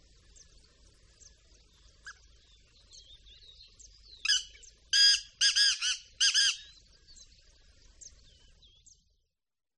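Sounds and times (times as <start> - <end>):
small birds thin high chirps: 0.0 - 9.2
Black francolin raspy buzzing calls: 4.2 - 6.8.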